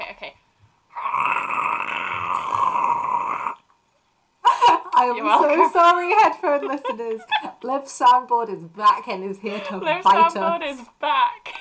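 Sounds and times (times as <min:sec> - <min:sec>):
voice imitating a fork in a garbage disposal: 0:00.9 - 0:03.7
laughter: 0:04.4 - 0:07.7
speech: 0:05.0 - 0:11.5.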